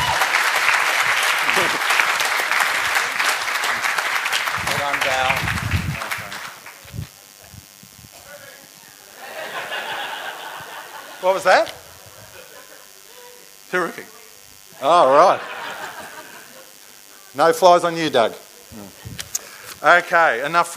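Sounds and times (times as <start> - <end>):
laughter: 0.0 - 3.9, 8.8 - 13.4, 14.9 - 16.8
audience clapping: 0.0 - 7.0
speech: 11.3 - 11.8, 13.7 - 14.2, 14.8 - 15.5, 17.3 - 19.0, 19.8 - 20.7.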